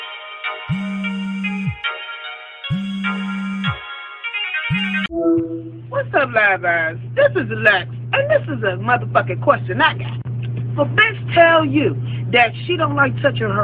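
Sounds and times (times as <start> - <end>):
electronic phone ringtone signalling an incoming call: 0.7 - 5.7
speech: 6.1 - 13.6.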